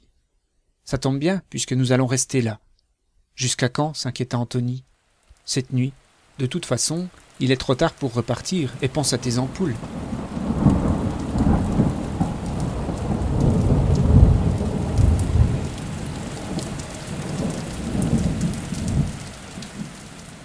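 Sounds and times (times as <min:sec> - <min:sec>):
speech: 0:00.9 - 0:02.7, 0:03.4 - 0:10.8
rain falling on a wooden plank roof: 0:04.9 - 0:20.4
thunder rumbling during a storm: 0:06.8 - 0:20.4.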